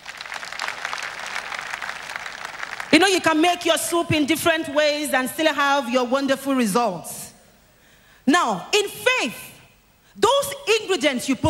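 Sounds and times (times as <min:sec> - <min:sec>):
audience applause: 0:00.0 - 0:03.0
speech: 0:03.1 - 0:07.2, 0:08.3 - 0:09.4, 0:10.2 - 0:11.4.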